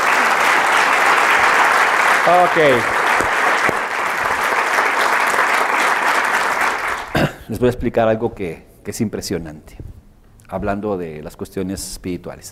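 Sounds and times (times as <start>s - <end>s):
audience applause: 0.0s - 7.2s
speech: 2.3s - 3.0s, 7.5s - 9.9s, 10.5s - 12.5s.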